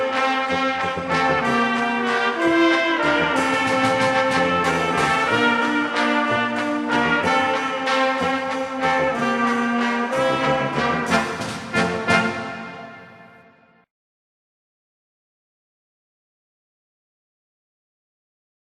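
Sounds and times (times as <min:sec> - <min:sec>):
fanfare: 0:00.0 - 0:13.8.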